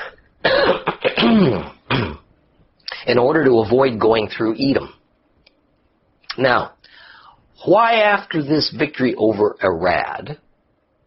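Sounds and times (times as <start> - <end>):
throat clearing: 0.0 - 2.3
speech: 3.1 - 5.0, 6.4 - 6.8, 7.6 - 10.4.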